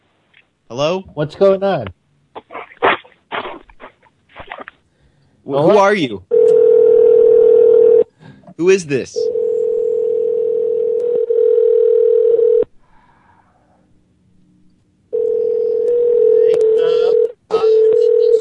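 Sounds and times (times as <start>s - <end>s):
speech: 0.7s - 2.0s, 5.5s - 6.4s, 8.6s - 9.3s
telephone dial tone: 6.3s - 8.1s, 9.3s - 12.7s, 15.1s - 18.3s.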